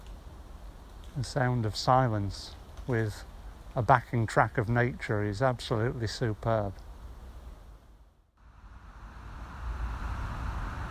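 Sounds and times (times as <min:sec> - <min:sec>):
drone of the A65 main road traffic: 0:00.0 - 0:10.9
speech: 0:01.2 - 0:06.9.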